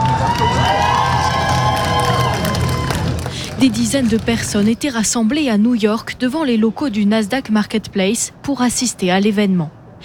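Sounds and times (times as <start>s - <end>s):
crowd cheering: 0.0s - 3.4s
crowd applause: 0.0s - 3.8s
speech: 3.6s - 9.8s.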